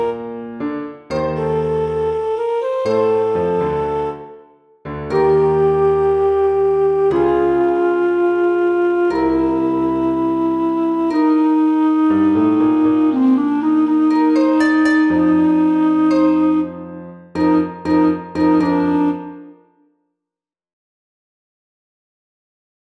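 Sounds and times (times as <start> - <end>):
melody: 0.0 - 0.3, 1.1 - 4.5, 5.1 - 19.7.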